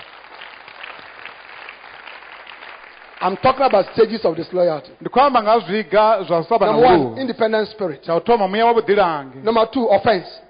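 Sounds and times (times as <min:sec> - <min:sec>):
church congregation clapping in applause: 0:00.0 - 0:04.8
speech: 0:03.2 - 0:10.4.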